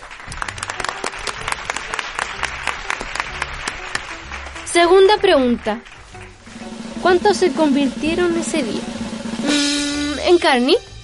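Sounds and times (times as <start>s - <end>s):
audience applause: 0.0s - 4.7s, 5.4s - 7.6s
speech: 4.8s - 5.9s, 7.0s - 10.9s.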